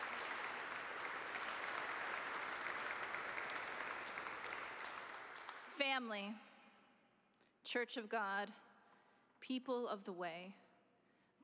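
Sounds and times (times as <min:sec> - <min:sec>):
round of applause: 0:00.0 - 0:05.8
speech: 0:05.8 - 0:06.5, 0:07.6 - 0:08.6, 0:09.4 - 0:10.6.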